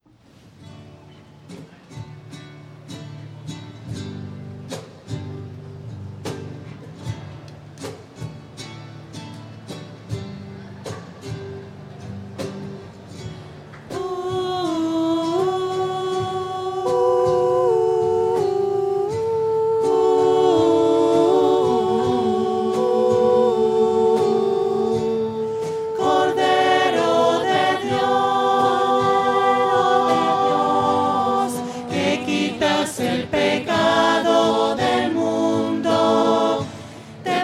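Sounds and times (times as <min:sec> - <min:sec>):
voices: 0:13.9 - 0:37.4.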